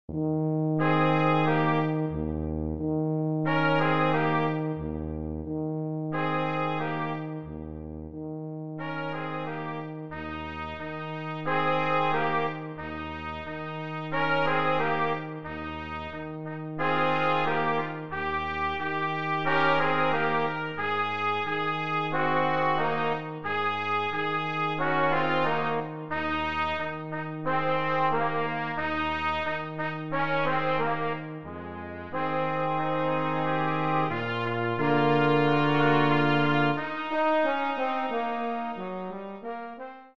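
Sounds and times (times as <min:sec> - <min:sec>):
brass blues: 0:00.1 - 0:40.1.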